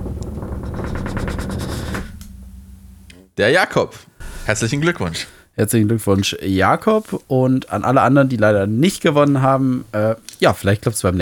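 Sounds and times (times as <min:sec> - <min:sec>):
snare drum roll: 0:00.0 - 0:02.9
speech: 0:03.4 - 0:11.2.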